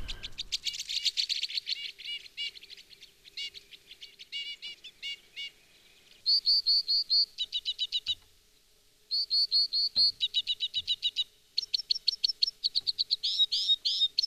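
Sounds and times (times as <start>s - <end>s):
Two-barred Crossbill singing: 0.0s - 8.2s, 9.1s - 14.2s.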